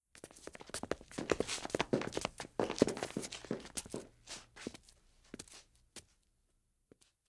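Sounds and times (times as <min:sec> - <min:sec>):
footsteps: 0:00.2 - 0:06.1.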